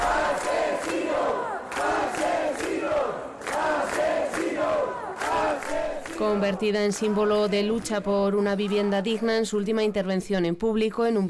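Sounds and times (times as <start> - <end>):
protesters shouting in indignation outside the Spanish Congress: 0.0 - 7.8
speech: 6.2 - 11.2.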